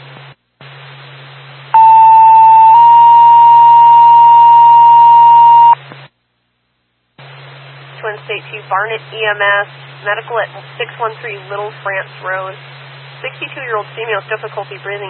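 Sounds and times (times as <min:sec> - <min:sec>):
radio dispatch alert tone: 0:01.8 - 0:05.8
speech: 0:08.7 - 0:15.0.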